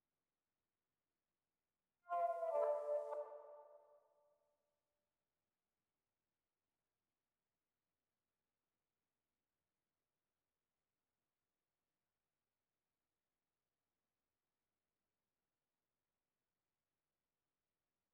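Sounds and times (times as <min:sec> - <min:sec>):
reversed synth pluck melody: 0:02.1 - 0:03.6.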